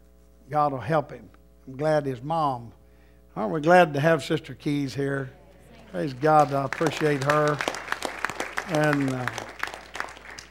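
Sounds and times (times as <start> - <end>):
speech: 0.5 - 2.8, 3.4 - 7.8, 8.7 - 9.5
audience clapping: 5.7 - 10.4.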